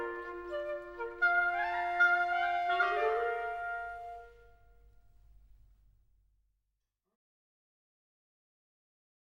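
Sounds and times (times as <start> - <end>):
oboe: 0.0 - 4.9
clarinet: 0.0 - 5.0
flute: 0.0 - 5.0.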